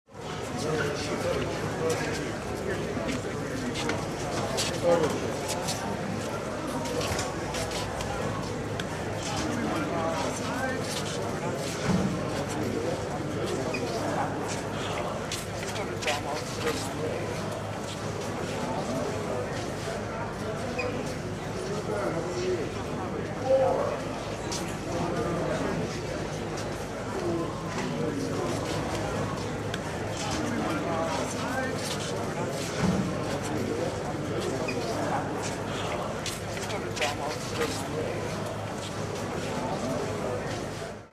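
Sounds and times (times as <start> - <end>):
busy fruit and vegetable market bustle: 0.1 - 41.1.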